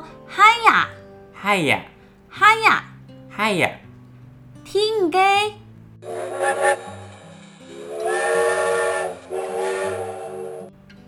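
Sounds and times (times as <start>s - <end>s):
speech: 0.8s - 3.8s, 4.7s - 6.9s
steam train whistle: 6.0s - 10.7s.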